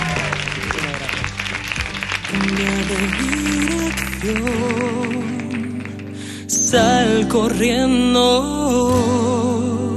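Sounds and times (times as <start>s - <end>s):
audience applause: 0.0s - 6.5s
speech: 2.3s - 5.6s, 6.5s - 9.8s.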